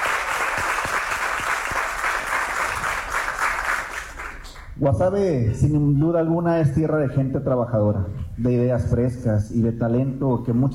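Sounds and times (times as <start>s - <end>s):
audience applause: 0.0s - 4.7s
speech: 4.8s - 10.7s.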